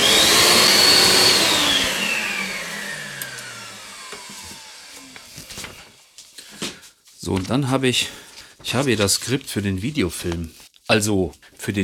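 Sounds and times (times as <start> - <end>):
vacuum cleaner running: 0.0 - 6.2
speech: 7.3 - 11.8.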